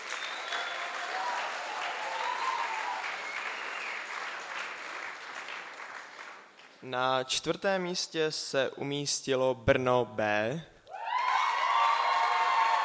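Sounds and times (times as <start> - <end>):
audience applause: 0.0 - 6.7, 11.0 - 12.8
speech: 6.8 - 10.7.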